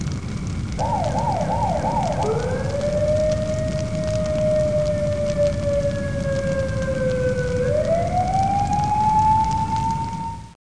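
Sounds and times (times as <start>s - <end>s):
fire alarm: 0.8s - 10.5s.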